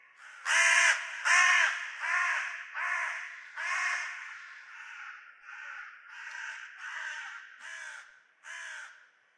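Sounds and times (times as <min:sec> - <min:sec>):
crow: 0:00.0 - 0:09.2.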